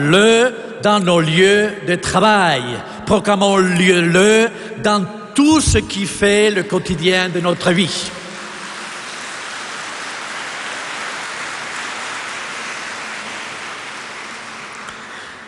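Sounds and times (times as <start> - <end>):
speech: 0.0 - 8.2
audience applauding: 8.0 - 15.4.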